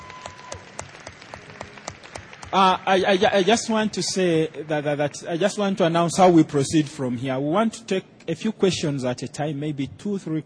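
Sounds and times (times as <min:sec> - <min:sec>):
audience applause: 0:00.0 - 0:05.6
speech: 0:02.5 - 0:10.4.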